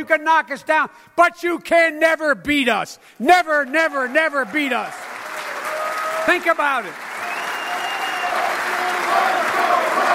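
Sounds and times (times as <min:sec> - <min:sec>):
speech: 0:00.0 - 0:05.2, 0:06.3 - 0:07.0
crowd cheering: 0:03.5 - 0:10.1.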